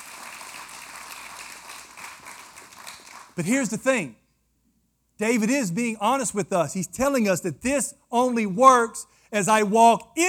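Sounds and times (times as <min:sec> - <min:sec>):
crowd clapping: 0:00.0 - 0:03.8
speech: 0:03.4 - 0:04.2, 0:05.2 - 0:10.2.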